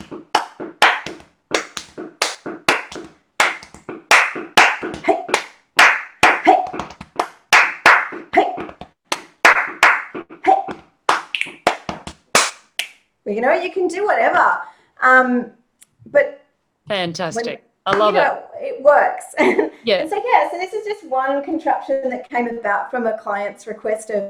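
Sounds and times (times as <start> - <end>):
body percussion from a group clapping hands and tapping on their bodies: 0.0 - 13.0
speech: 13.3 - 16.3, 16.9 - 24.2.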